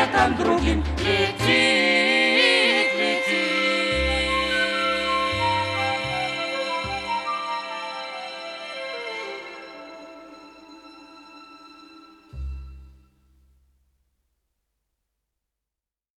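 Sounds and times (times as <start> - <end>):
vocal quartet singing: 0.0 - 8.9.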